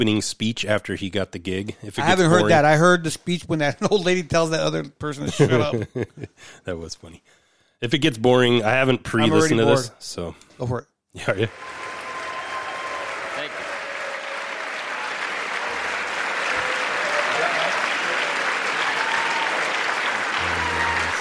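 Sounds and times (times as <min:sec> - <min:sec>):
speech: 0:00.0 - 0:11.8
laughter: 0:02.0 - 0:02.6, 0:05.1 - 0:06.4, 0:09.2 - 0:09.8
crowd applauding in played speech recording: 0:11.4 - 0:21.1.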